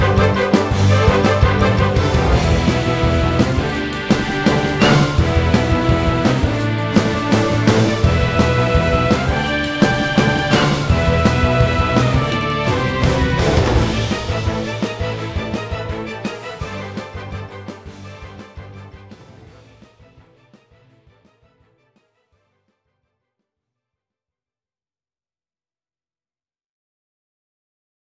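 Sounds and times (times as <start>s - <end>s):
prog rock music: 0.0s - 19.8s.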